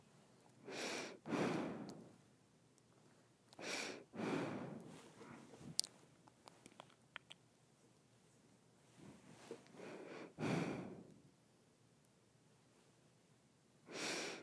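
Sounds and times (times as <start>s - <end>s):
slow breathing through the nose: 0.6s - 2.1s, 3.6s - 5.5s, 9.6s - 11.1s, 13.9s - 14.4s.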